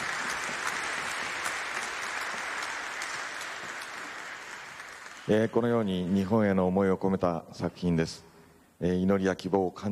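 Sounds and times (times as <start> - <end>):
audience applause: 0.0 - 6.1
speech: 5.3 - 9.9.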